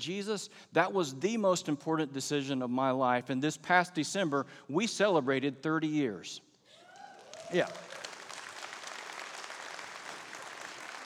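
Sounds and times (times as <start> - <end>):
speech: 0.0 - 6.5, 7.5 - 7.9
audience clapping: 7.0 - 11.0.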